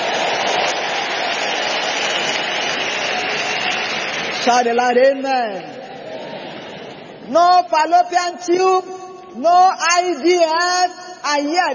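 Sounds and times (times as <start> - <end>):
audience clapping: 0.0 - 4.5
speech: 4.4 - 5.9, 7.3 - 11.7.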